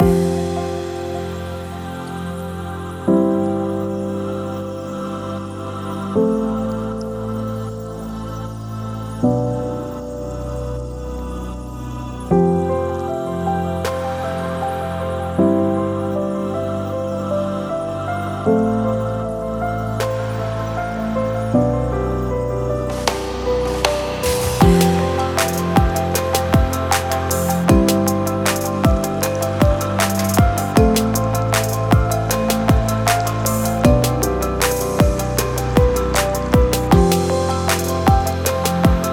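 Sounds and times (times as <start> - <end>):
inspirational music loop: 0.0 - 39.1.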